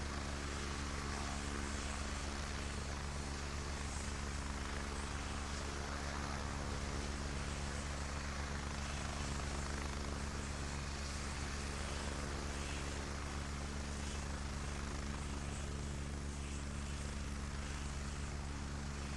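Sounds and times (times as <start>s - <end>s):
helicopter turbine and rotors idling outside: 0.0s - 19.1s.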